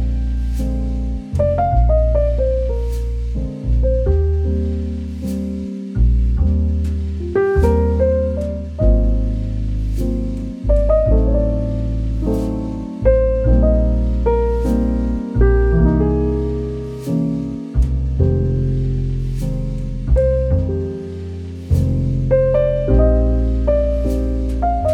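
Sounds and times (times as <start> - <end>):
romantic cozy homey relaxing jazz music: 0.0 - 24.9.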